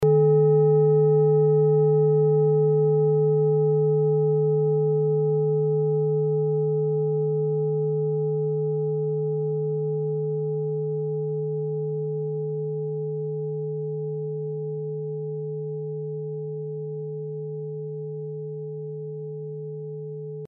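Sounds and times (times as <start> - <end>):
Orissa singing bowl: 0.0 - 20.4.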